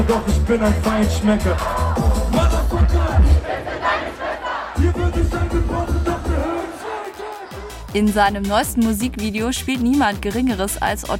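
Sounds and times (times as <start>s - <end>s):
rhythmic low thumps: 0.0s - 3.6s, 4.7s - 11.1s
concert crowd cheering and shouting wildly: 0.0s - 8.1s
speech: 0.1s - 2.6s, 7.9s - 11.1s.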